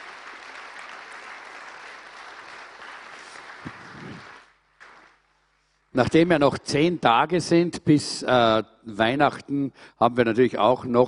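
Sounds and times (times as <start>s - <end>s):
crowd clapping: 0.0s - 5.5s
speech: 6.0s - 11.0s.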